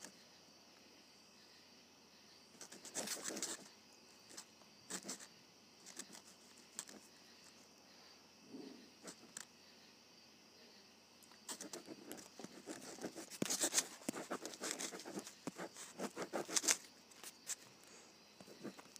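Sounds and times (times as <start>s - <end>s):
ballpoint pen writing on paper: 2.6s - 3.7s, 4.3s - 5.3s, 5.9s - 7.0s, 9.0s - 9.4s, 11.5s - 17.6s, 18.5s - 18.9s.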